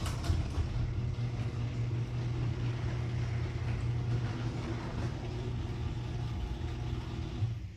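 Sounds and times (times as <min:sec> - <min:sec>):
garage door running on new nylon rollers: 0:00.0 - 0:07.7.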